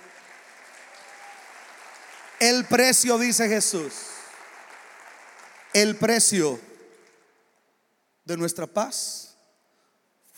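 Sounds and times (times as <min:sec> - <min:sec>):
crowd applause: 0:00.0 - 0:07.2
speech: 0:02.4 - 0:04.2, 0:05.8 - 0:06.7, 0:08.3 - 0:09.3.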